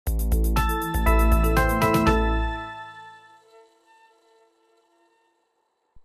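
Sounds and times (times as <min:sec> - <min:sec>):
percussion: 0:00.1 - 0:03.4.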